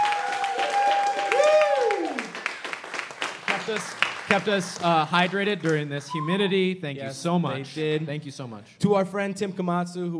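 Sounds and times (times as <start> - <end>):
audience applause: 0.0 - 6.2
speech: 3.7 - 10.1.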